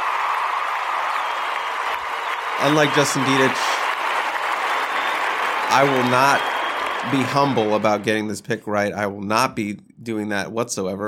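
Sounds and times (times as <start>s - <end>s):
applause sound effect: 0.0s - 8.3s
speech: 2.6s - 3.8s, 5.7s - 11.0s.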